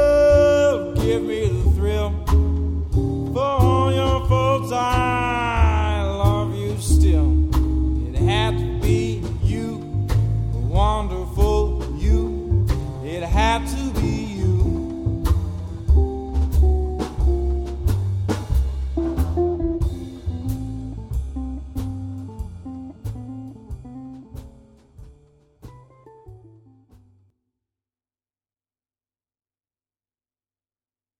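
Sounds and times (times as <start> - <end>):
jazz standard vocals: 0.0 - 24.5
drums: 0.0 - 27.1
guitar: 0.0 - 27.3.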